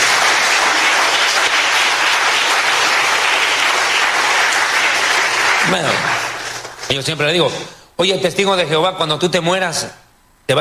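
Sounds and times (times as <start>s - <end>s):
audience applauding: 0.0s - 6.9s
speech: 5.7s - 6.3s, 6.9s - 10.5s.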